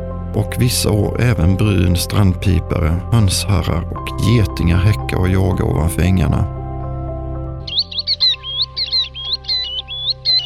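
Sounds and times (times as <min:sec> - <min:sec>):
speech: 0:00.4 - 0:06.6
tern singing high thin chirping notes: 0:07.6 - 0:10.4.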